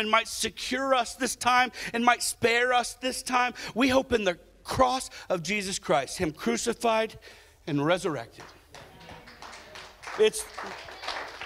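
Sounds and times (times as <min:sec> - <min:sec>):
speech: 0:00.0 - 0:08.6, 0:10.2 - 0:10.9
audience clapping: 0:08.4 - 0:11.4
murmuring voices: 0:08.8 - 0:09.9.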